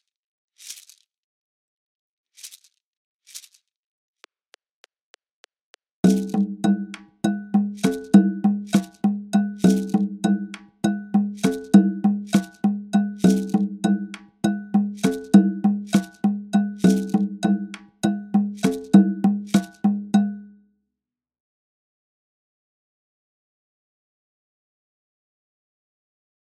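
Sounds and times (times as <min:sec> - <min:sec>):
Latin American yanvalou rhythm at 100 bpm: 0:06.0 - 0:20.5.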